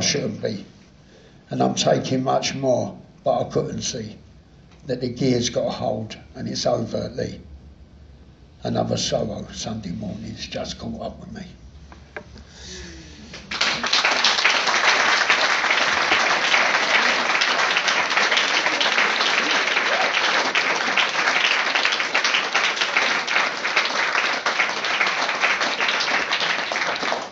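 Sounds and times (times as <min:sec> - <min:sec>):
speech: 0:00.1 - 0:00.8, 0:01.5 - 0:04.2, 0:04.8 - 0:07.5, 0:08.6 - 0:11.6
audience applause: 0:13.2 - 0:27.2.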